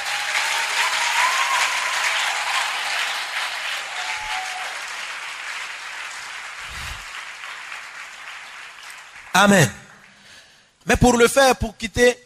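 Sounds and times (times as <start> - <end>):
scattered audience cheers and whistles: 0.0 - 4.9
audience applause: 0.0 - 10.4
speech: 9.4 - 9.8, 10.9 - 12.2.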